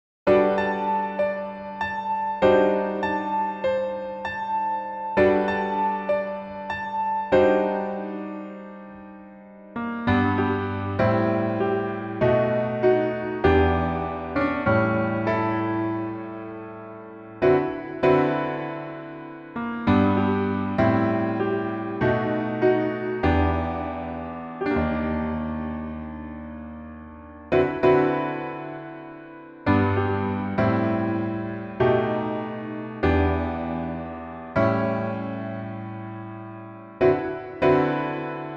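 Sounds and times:
piano music: 0.3 - 38.5.

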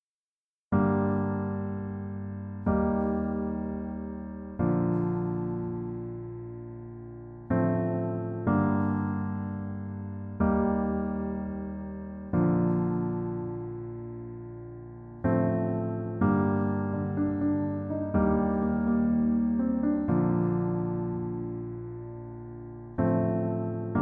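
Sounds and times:
piano melody backing track: 0.7 - 23.9.

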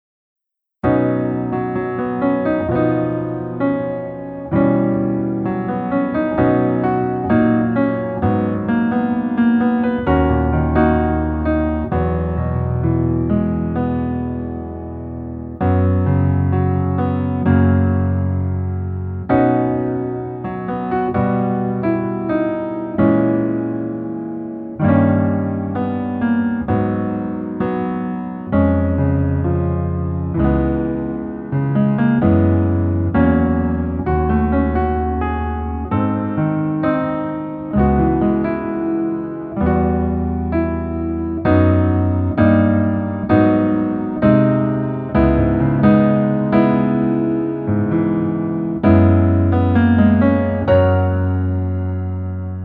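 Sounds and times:
piano music: 0.8 - 52.6.

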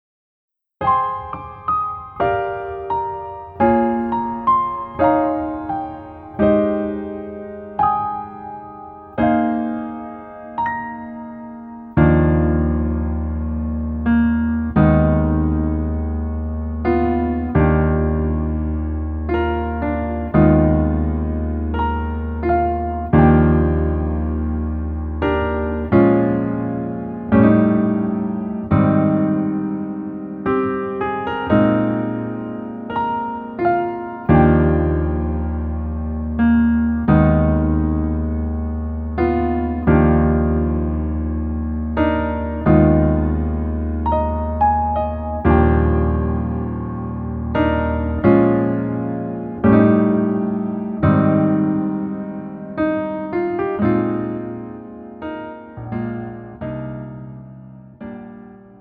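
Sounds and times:
piano music: 0.8 - 58.7.

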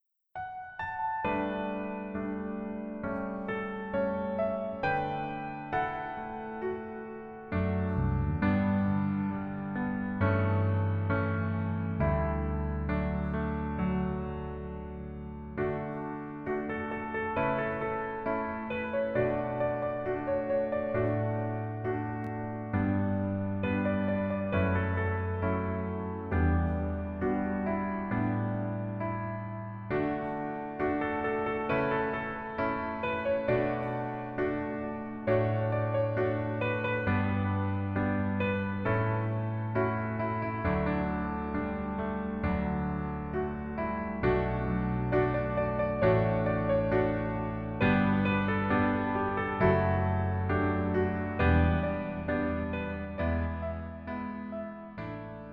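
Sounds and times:
piano version melody backing track: 0.4 - 55.5.

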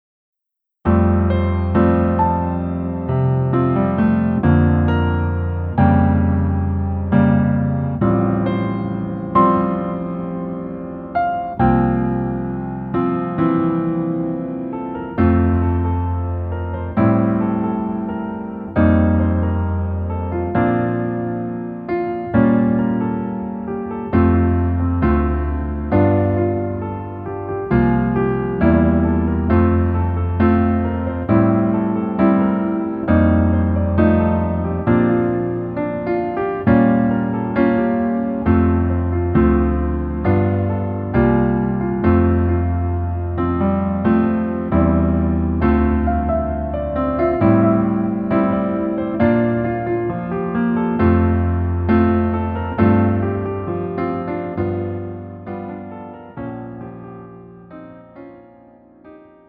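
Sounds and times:
piano melody backing track in male key: 0.8 - 59.4.

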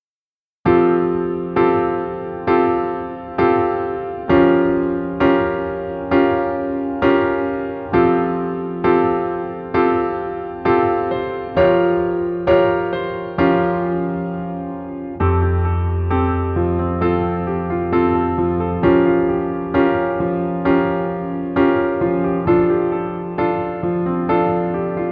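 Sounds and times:
piano melody in female key: 0.6 - 25.1.

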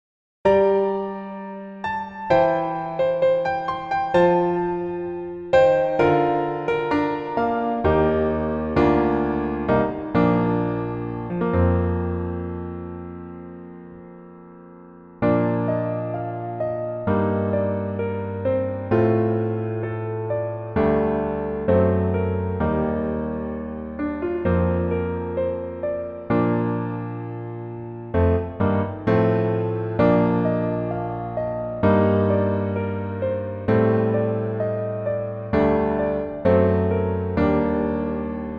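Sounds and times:
piano melody: 0.4 - 38.5.

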